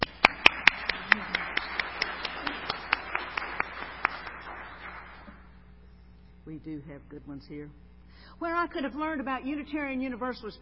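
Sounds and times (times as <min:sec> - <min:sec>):
audience clapping: 0:00.0 - 0:05.5
speech: 0:06.5 - 0:10.6.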